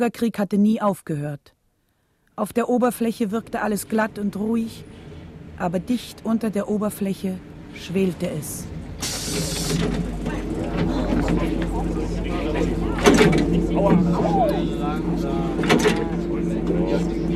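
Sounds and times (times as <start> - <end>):
speech: 0.0 - 1.6, 2.4 - 10.2, 11.3 - 16.1
bus engine drone: 3.2 - 17.3
bus doors hissing and clunking: 8.7 - 16.8
thuds as passengers climb aboard: 8.9 - 17.0
voices murmuring: 9.0 - 17.3.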